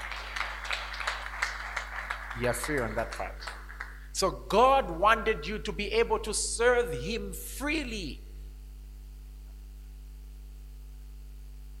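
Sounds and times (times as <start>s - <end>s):
audience clapping: 0.0s - 4.3s
speech: 2.4s - 3.6s, 4.2s - 8.2s.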